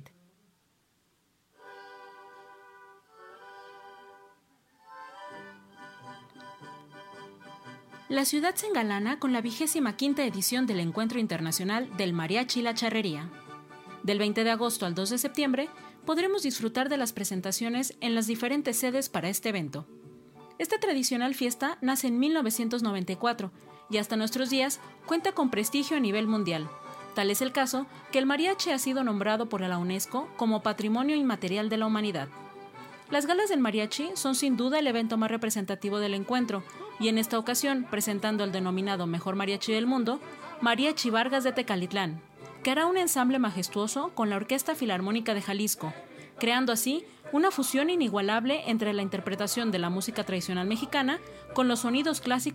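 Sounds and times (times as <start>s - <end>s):
mariachi music: 1.5s - 52.5s.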